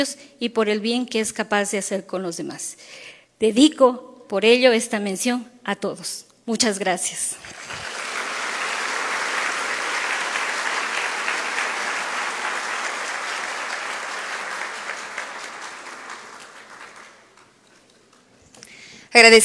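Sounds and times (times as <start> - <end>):
speech: 0.0 - 7.8, 19.2 - 19.4
crowd applauding: 7.5 - 18.3.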